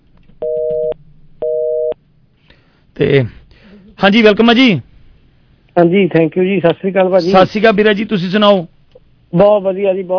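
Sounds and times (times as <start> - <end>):
telephone busy tone after a call is cut off: 0.4 - 2.0
speech: 3.0 - 3.4, 4.0 - 4.9, 5.8 - 8.7, 9.3 - 10.1.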